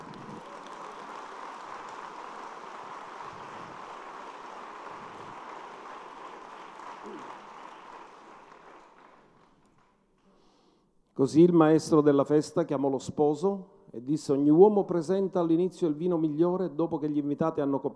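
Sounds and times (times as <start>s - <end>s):
audience applause: 0.0s - 10.0s
speech: 11.2s - 17.9s.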